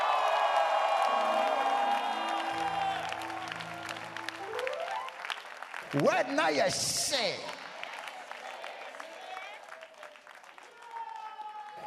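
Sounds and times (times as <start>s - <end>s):
crowd clapping and shouting: 0.0s - 11.8s
held organ chords: 1.2s - 7.0s
speech: 5.9s - 7.6s.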